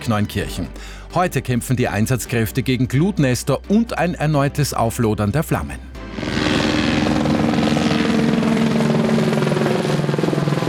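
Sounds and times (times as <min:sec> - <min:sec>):
speech: 0:00.0 - 0:06.4
firefighting helicopters flying overhead: 0:06.2 - 0:10.6.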